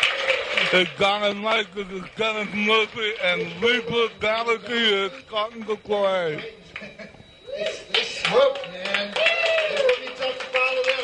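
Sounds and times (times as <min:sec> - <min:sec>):
concert crowd clapping: 0:00.0 - 0:04.6, 0:07.6 - 0:11.0
speech: 0:00.7 - 0:09.3.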